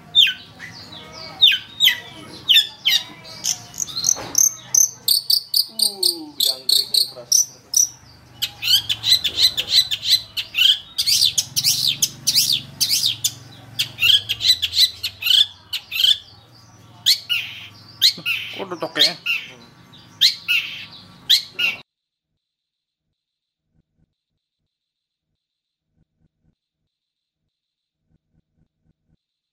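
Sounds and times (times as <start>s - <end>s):
long-tailed shrike singing: 0.0s - 21.8s.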